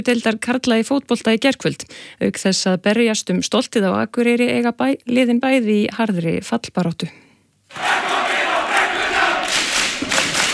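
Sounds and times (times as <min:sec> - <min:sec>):
speech: 0:00.0 - 0:07.9
KA football fans roaring and cheering a win over Þór in Akureyri: 0:07.7 - 0:10.5.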